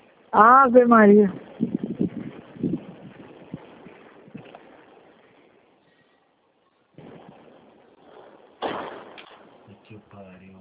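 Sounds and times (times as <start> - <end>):
strong gusting wind: 0.1 - 5.2, 7.0 - 8.5
speech: 0.3 - 1.5.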